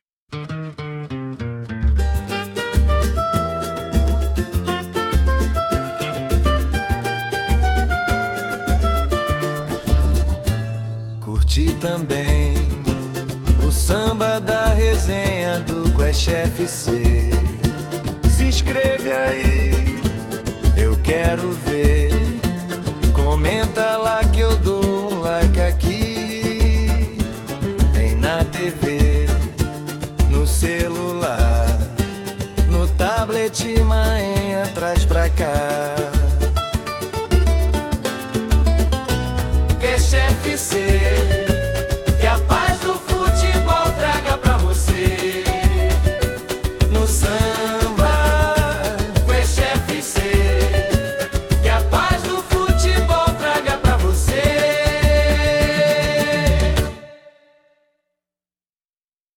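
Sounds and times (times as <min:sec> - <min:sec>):
samba music: 0:02.0 - 0:10.8, 0:11.6 - 0:57.3.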